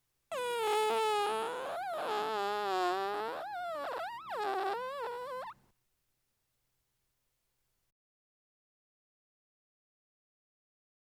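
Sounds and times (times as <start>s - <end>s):
fart: 0.3s - 5.6s.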